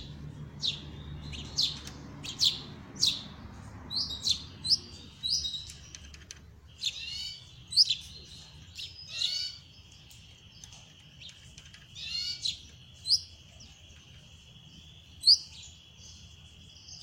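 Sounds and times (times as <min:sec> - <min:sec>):
copper-coloured Belgian canary singing trills and rattling rolls: 0:00.0 - 0:17.0.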